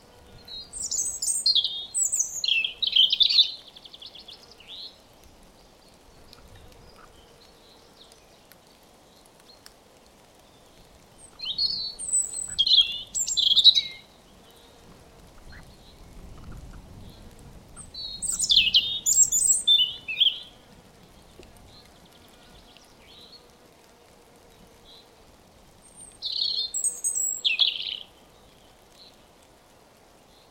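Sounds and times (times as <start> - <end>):
European robin singing: 0.4 - 5.0, 11.2 - 14.2, 17.8 - 20.6, 25.8 - 29.1.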